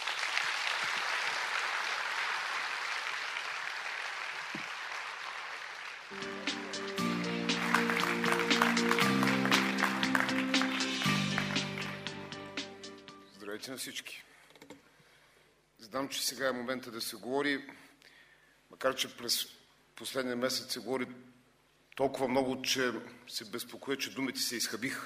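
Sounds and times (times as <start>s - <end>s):
crowd applauding: 0.0s - 12.9s
speech: 6.1s - 6.5s, 13.7s - 14.3s, 15.9s - 17.8s, 18.8s - 21.4s, 22.0s - 25.0s
music with sustained low tones and bright accents: 6.1s - 13.4s.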